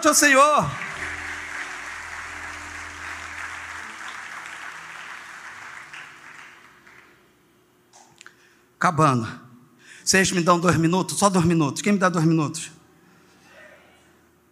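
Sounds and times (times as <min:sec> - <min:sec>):
speech: 0:00.0 - 0:00.8, 0:08.8 - 0:09.4, 0:10.1 - 0:12.8
audience round of applause: 0:00.6 - 0:07.2.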